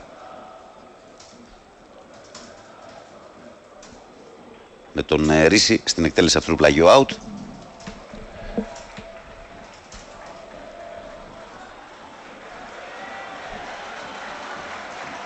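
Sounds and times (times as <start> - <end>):
stadium crowd cheering: 0.0 - 5.3, 6.6 - 15.2
speech: 5.0 - 7.3
stadium crowd applause: 7.6 - 15.2.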